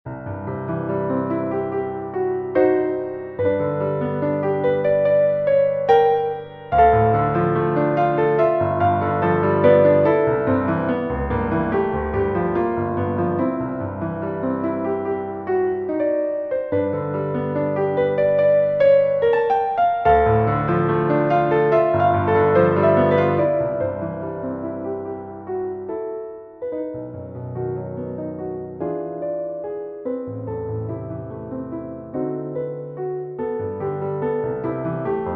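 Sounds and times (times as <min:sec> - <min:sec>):
piano: 0:00.0 - 0:35.3.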